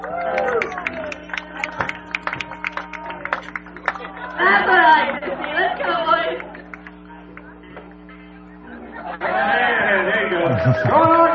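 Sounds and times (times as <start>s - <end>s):
audience applause at baseball game: 0.0s - 7.5s
laughter: 0.6s - 7.6s, 8.4s - 11.3s.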